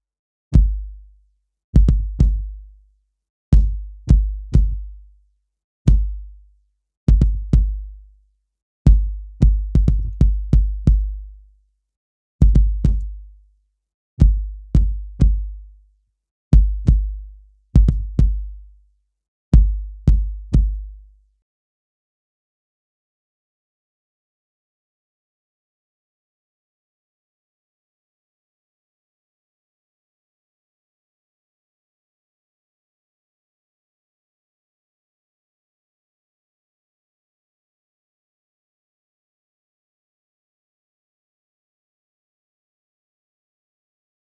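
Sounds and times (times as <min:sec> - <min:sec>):
cardboard kick drum with drive distortion: 0:01.8 - 0:02.6, 0:03.6 - 0:04.9, 0:05.9 - 0:06.2, 0:07.1 - 0:07.9, 0:08.9 - 0:11.3, 0:12.4 - 0:13.2, 0:14.2 - 0:15.6, 0:16.6 - 0:18.6, 0:19.6 - 0:21.0.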